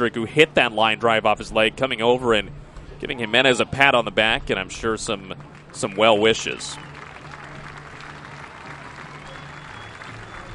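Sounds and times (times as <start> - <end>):
speech: 0.0 - 6.9
light applause from stadium crowd: 5.1 - 10.5.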